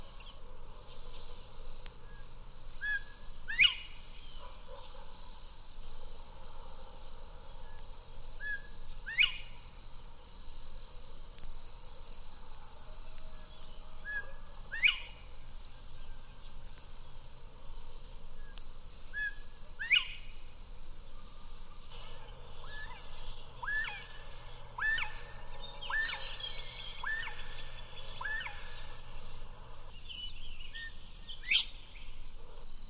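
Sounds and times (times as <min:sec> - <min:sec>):
constant high drone of insects: 0:00.0 - 0:32.8
bobwhite whistling call: 0:24.8 - 0:28.8.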